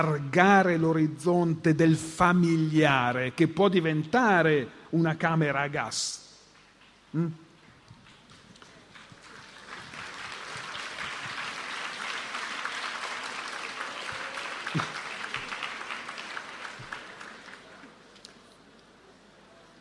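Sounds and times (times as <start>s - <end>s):
speech: 0.0s - 6.2s, 7.1s - 7.4s, 14.8s - 15.0s
audience applause: 8.1s - 18.1s.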